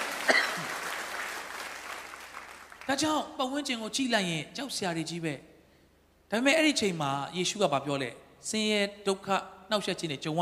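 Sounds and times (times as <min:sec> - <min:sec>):
congregation clapping in praise at a church service: 0:00.0 - 0:03.1
speech: 0:02.9 - 0:05.5, 0:06.3 - 0:10.4.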